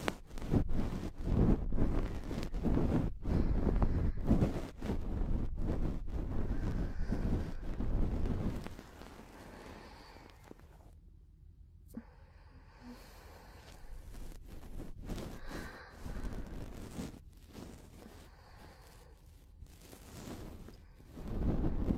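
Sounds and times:
close-up ear cleaning scratching and rubbing: 0:00.0 - 0:11.0, 0:13.0 - 0:21.9
soft sparse rustles: 0:00.0 - 0:11.1, 0:12.8 - 0:21.9.

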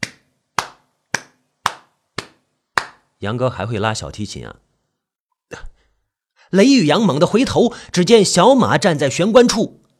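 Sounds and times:
hands clapping: 0:00.0 - 0:03.1
speech: 0:03.2 - 0:04.6, 0:06.5 - 0:09.8.

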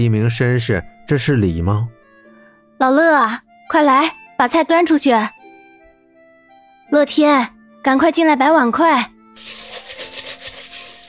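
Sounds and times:
speech: 0:00.0 - 0:02.0, 0:02.8 - 0:05.4, 0:06.9 - 0:10.0
wok being scrubbed: 0:09.4 - 0:11.0.

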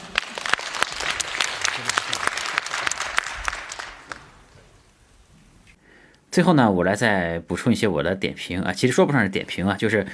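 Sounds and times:
audience clapping: 0:00.0 - 0:04.5
speech: 0:06.4 - 0:10.1.

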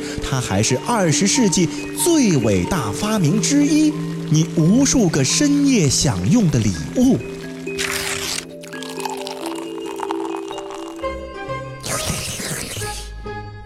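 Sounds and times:
speech: 0:00.3 - 0:07.9
person eating instant noodles: 0:07.7 - 0:11.1, 0:11.8 - 0:13.1.

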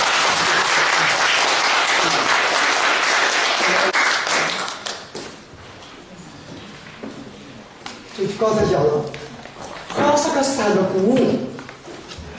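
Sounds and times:
audience applause: 0:00.0 - 0:05.1
speech: 0:08.4 - 0:09.2, 0:10.2 - 0:11.5.

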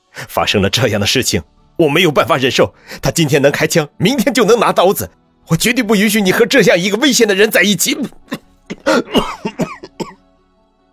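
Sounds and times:
speech: 0:00.3 - 0:09.7
violent coughing: 0:07.9 - 0:10.2.

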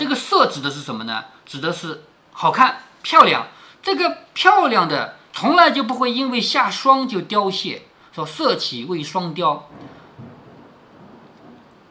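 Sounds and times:
speech: 0:00.4 - 0:10.0
thunder rumbling: 0:09.6 - 0:11.8.

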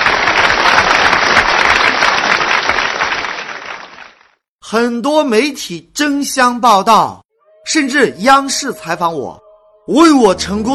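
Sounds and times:
audience applause: 0:00.0 - 0:04.4
speech: 0:04.7 - 0:10.7.

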